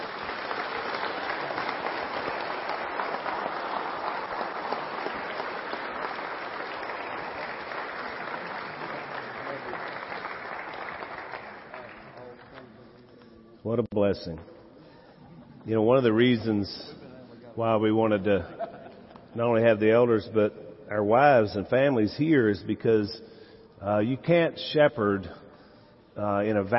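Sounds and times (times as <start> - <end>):
audience hand clapping: 0.0 - 13.3
speech: 13.7 - 14.5, 15.7 - 17.0, 17.6 - 18.6, 19.4 - 25.4, 26.2 - 26.7.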